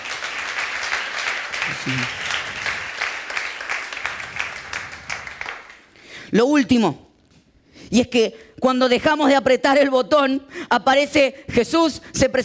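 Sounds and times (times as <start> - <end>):
audience applause: 0.0 - 6.0
speech: 1.8 - 2.2, 6.3 - 7.0, 7.9 - 12.4.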